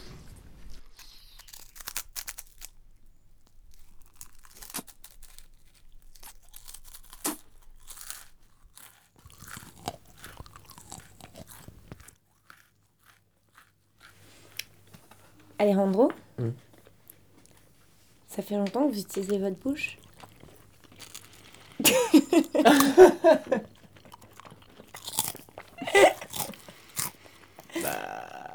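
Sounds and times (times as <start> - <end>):
crunchy food being bitten and chewed: 1.0 - 28.5
speech: 15.6 - 16.6, 18.4 - 20.0, 21.9 - 23.7
laughter: 21.8 - 23.8, 25.8 - 26.4.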